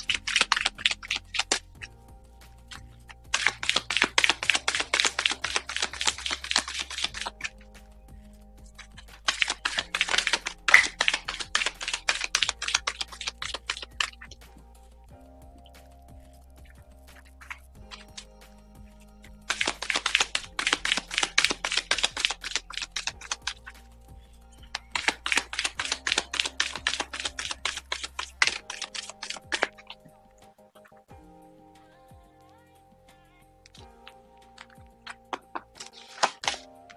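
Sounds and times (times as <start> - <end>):
oracle cards shuffled and drawn: 0.0 - 1.8, 2.5 - 7.9, 8.8 - 14.3, 19.5 - 24.0, 24.8 - 29.9, 34.6 - 36.9.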